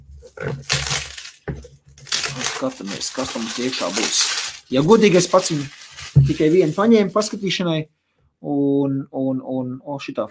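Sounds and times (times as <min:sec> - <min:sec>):
product packaging tearing open: 0:00.2 - 0:07.5
speech: 0:00.3 - 0:01.1, 0:02.6 - 0:10.2.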